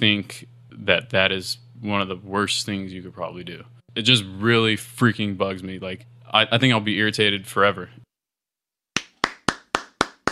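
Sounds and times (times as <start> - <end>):
speech: 0.0 - 8.0
hands clapping: 9.0 - 10.3.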